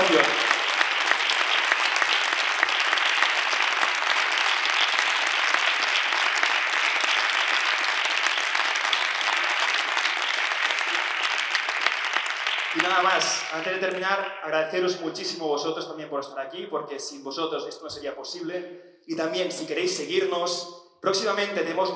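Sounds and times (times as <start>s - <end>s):
audience applause: 0.0s - 14.4s
speech: 13.0s - 21.9s.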